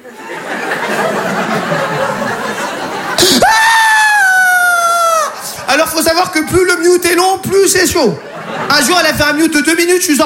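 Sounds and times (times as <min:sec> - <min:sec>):
crowd laughing: 0:00.0 - 0:06.0, 0:07.8 - 0:09.7
person imitating a baby's screaming cry: 0:03.2 - 0:05.4
speech: 0:05.8 - 0:10.2.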